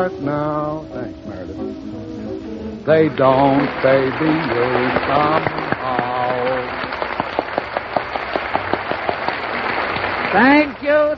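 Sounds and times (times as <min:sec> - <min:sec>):
speech: 0:00.0 - 0:01.7, 0:02.9 - 0:05.7, 0:10.3 - 0:11.1
audience applause: 0:03.2 - 0:11.1.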